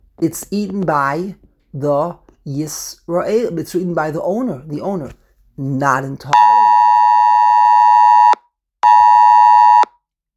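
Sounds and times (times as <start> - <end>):
speech: 0.2 - 6.5
phone Amber Alert emergency alarm tone: 6.3 - 9.9.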